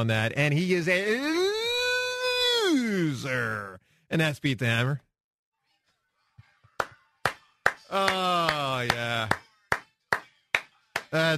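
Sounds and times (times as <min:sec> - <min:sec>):
speech: 0:00.0 - 0:01.4, 0:02.7 - 0:05.0, 0:07.9 - 0:09.4, 0:11.1 - 0:11.3
person clapping: 0:06.8 - 0:11.2.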